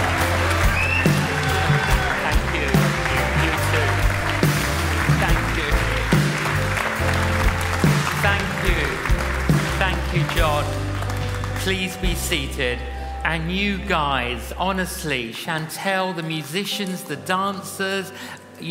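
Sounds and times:
church congregation applauding in welcome of a visiting canon: 0:00.0 - 0:12.7
speech: 0:11.7 - 0:18.6.

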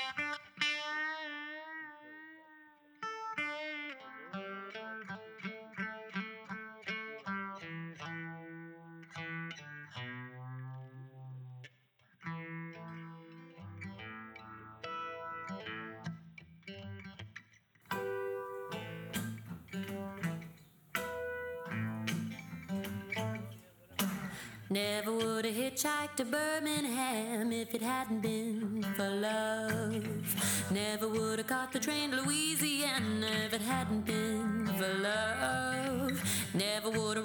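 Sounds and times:
guitar: 0:00.0 - 0:37.2
country song cover: 0:17.9 - 0:37.2
bass: 0:21.7 - 0:24.5, 0:32.4 - 0:37.2
speech: 0:24.7 - 0:37.2.

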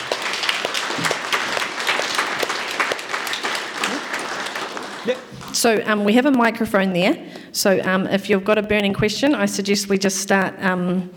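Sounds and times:
applause from a sizeable audience: 0:00.0 - 0:05.6
speech: 0:05.0 - 0:11.1.

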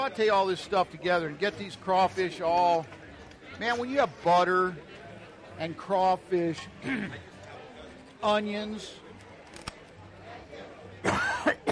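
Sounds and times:
speech: 0:00.0 - 0:03.0, 0:03.6 - 0:04.9, 0:05.6 - 0:07.3, 0:08.2 - 0:09.0
person coughing while cooking crawfish in butter with onions: 0:11.0 - 0:11.7.

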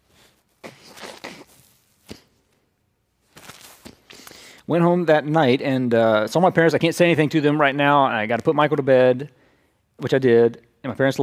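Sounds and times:
nose blowing: 0:00.0 - 0:02.5, 0:03.8 - 0:04.6
speech: 0:04.7 - 0:09.4, 0:10.0 - 0:11.2.

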